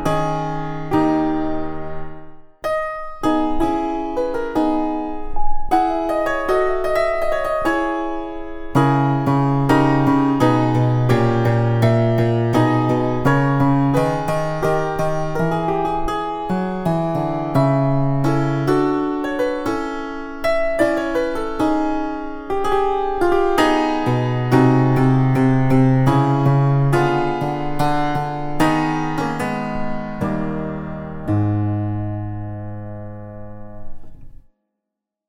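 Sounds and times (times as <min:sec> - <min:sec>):
Lutheal piano with clavecin stop playing a larghetto: 0:00.0 - 0:34.5.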